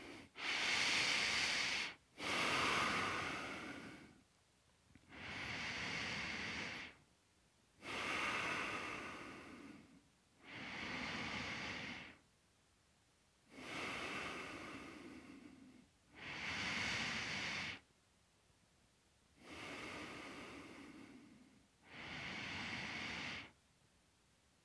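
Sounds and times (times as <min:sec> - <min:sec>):
deep breathing during a yoga hip opener: 0:00.0 - 0:04.2, 0:05.0 - 0:07.0, 0:07.8 - 0:12.2, 0:13.5 - 0:17.9, 0:19.4 - 0:23.6.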